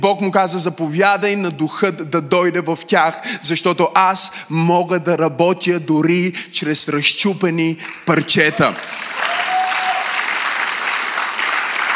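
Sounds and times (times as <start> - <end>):
speech: 0.0 - 9.5
church audience applauding: 7.8 - 11.9.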